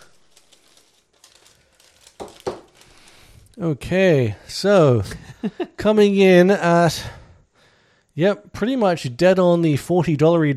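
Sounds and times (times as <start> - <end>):
paper envelope being opened: 0.0 - 3.5
speech: 3.6 - 7.2, 8.2 - 10.5.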